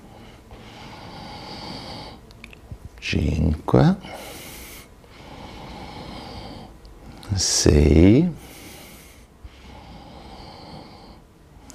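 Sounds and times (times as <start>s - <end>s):
breathing in and out during a breathing exercise: 0.0s - 2.4s, 4.0s - 7.4s, 8.2s - 11.7s
speech: 3.0s - 4.2s, 7.4s - 8.4s.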